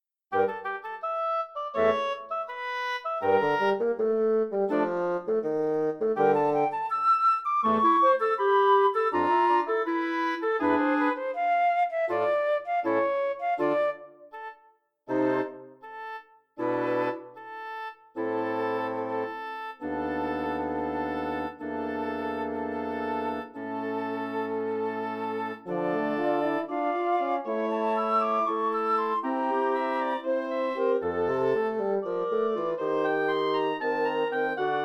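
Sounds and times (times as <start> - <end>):
wind quintet: 0.3 - 34.8.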